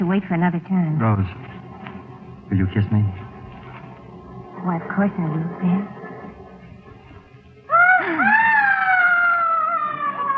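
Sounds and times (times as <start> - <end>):
speech: 0.1 - 1.6, 2.5 - 3.2, 4.6 - 6.0
screams: 7.7 - 10.3.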